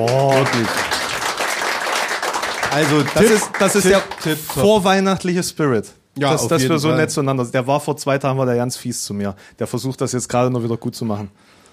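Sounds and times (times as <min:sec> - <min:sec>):
speech: 0:00.0 - 0:01.0, 0:02.7 - 0:11.6
live audience clapping: 0:00.0 - 0:05.2.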